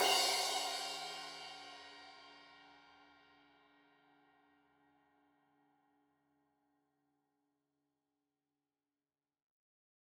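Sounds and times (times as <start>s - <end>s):
15 inch crash cymbal edge hit: 0.0s - 2.1s.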